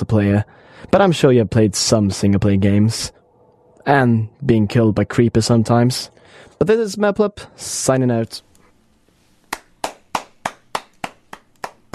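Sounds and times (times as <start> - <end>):
speech: 0.1 - 3.2, 3.8 - 8.5
hand clapping: 9.5 - 11.9.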